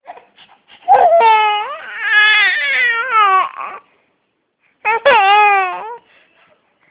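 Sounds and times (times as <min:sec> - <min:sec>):
hungry baby boy: 0:00.0 - 0:04.0, 0:04.8 - 0:06.9.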